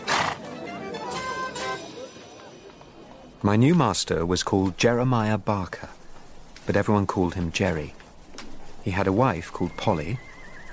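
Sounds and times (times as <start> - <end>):
horse neighing: 0.0 - 0.5, 9.6 - 10.7
speech: 3.4 - 6.0, 6.7 - 8.0, 8.8 - 10.3.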